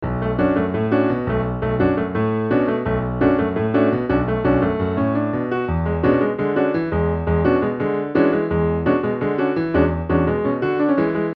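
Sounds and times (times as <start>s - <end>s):
piano: 0.0s - 11.3s.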